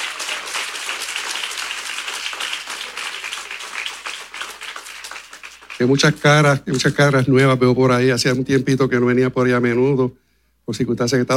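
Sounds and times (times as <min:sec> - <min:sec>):
audience applauding: 0:00.0 - 0:06.4
speech: 0:05.8 - 0:11.3.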